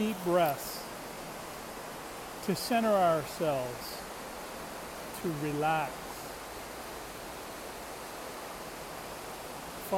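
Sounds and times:
speech: 0:00.0 - 0:00.8, 0:02.4 - 0:04.0, 0:05.2 - 0:06.0
flowing river water: 0:00.0 - 0:09.9.

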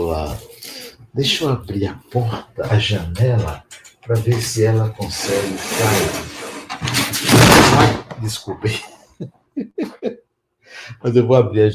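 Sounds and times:
speech: 0:00.0 - 0:00.5, 0:01.1 - 0:11.7
curtain falling down: 0:05.6 - 0:08.1
laughter: 0:08.7 - 0:10.2.

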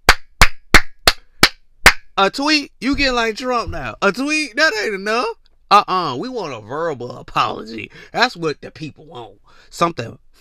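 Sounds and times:
hand claps: 0:00.0 - 0:02.1
speech: 0:02.2 - 0:10.3.

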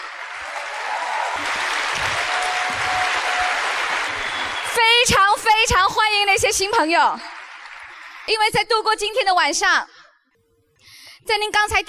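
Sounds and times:
audience applause: 0:00.0 - 0:05.4, 0:06.7 - 0:08.5
speech: 0:04.8 - 0:07.3, 0:08.3 - 0:09.9, 0:11.3 - 0:11.8.

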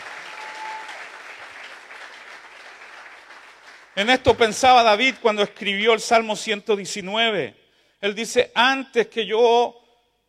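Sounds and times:
audience applause: 0:00.0 - 0:04.0
speech: 0:04.0 - 0:09.8.

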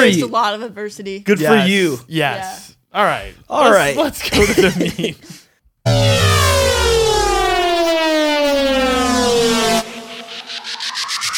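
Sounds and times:
speech: 0:00.0 - 0:06.4
laughter: 0:04.2 - 0:05.4
lightning round sound effect: 0:05.9 - 0:11.3.

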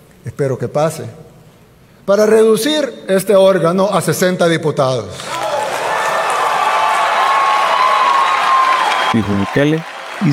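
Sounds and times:
speech: 0:00.2 - 0:01.2, 0:02.1 - 0:05.4, 0:09.2 - 0:10.3
ovation and applause in assembly: 0:05.2 - 0:10.3.

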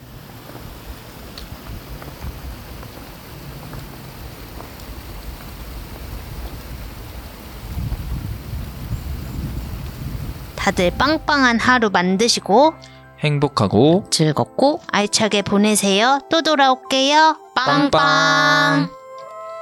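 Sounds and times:
mountain stream flowing: 0:00.0 - 0:11.4
speech: 0:10.6 - 0:19.0.

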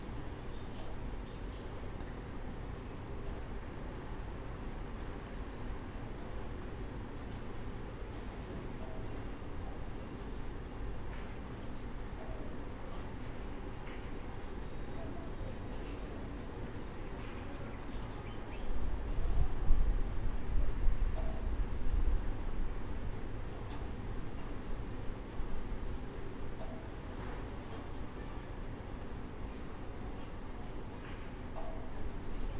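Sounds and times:
steady rain hissing and rumbling: 0:00.0 - 0:32.5.

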